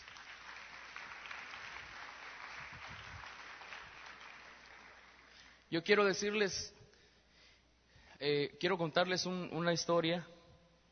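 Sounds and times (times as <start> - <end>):
audience applause: 0.0 - 5.6
speech: 5.7 - 6.8, 8.2 - 10.3.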